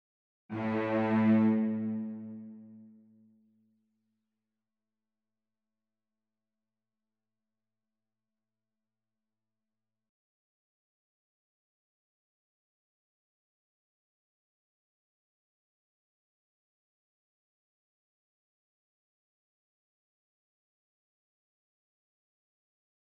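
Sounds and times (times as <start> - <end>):
instrumental music: 0.5 - 3.0.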